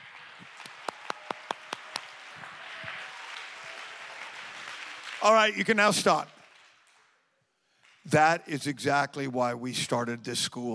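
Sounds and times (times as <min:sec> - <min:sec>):
audience clapping hands: 0:00.0 - 0:08.4
speech: 0:05.2 - 0:06.4, 0:08.1 - 0:10.7.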